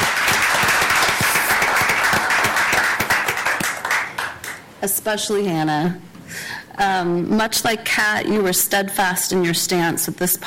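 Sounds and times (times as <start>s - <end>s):
audience round of applause: 0.0s - 4.6s
speech: 4.8s - 10.4s.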